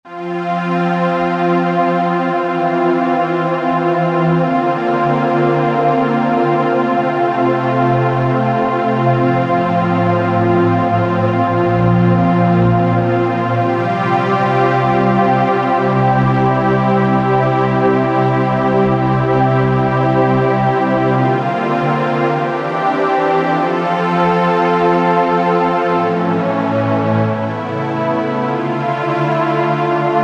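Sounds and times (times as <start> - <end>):
underscore synth pad: 0.1 - 30.2.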